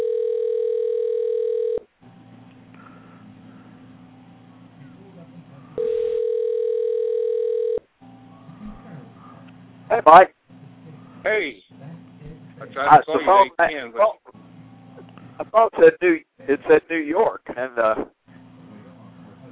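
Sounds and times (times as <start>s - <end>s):
low rumbling phone line noise: 0.0s - 1.9s, 5.8s - 8.7s
telephone ringing on a phone call: 0.0s - 1.9s, 5.8s - 8.2s
speech: 10.0s - 10.4s, 12.6s - 14.2s, 15.4s - 18.2s.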